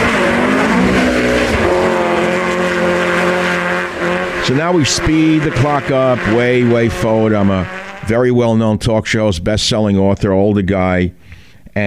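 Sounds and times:
sports car racing and skidding on snow: 0.0s - 8.5s
speech: 4.5s - 11.2s.

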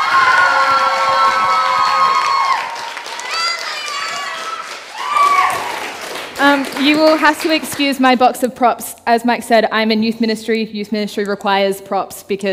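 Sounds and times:
audience cheering: 0.0s - 7.5s
speech: 6.5s - 12.5s.

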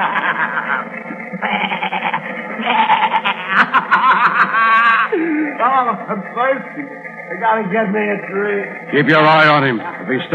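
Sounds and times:
billy goats bleating: 0.0s - 5.2s
laughter: 0.0s - 10.3s
speech: 5.6s - 10.3s.

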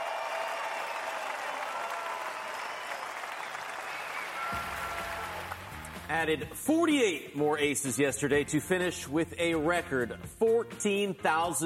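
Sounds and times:
crowd applause: 0.0s - 6.3s
speech: 6.1s - 11.6s.

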